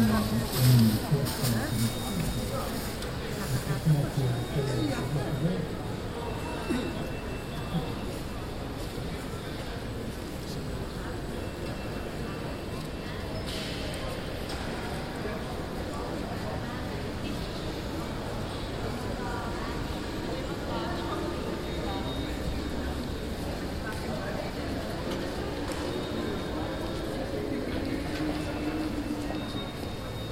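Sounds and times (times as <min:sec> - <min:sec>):
murmur of voices in the atrium of The Hague City Hall: 0:00.0 - 0:30.3.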